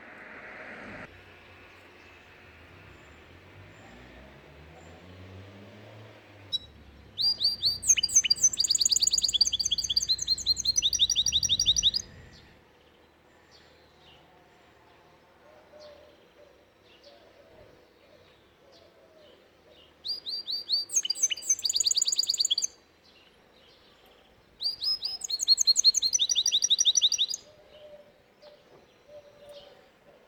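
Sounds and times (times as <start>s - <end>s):
canary singing: 6.5s - 12.6s, 19.8s - 22.8s, 24.6s - 29.8s.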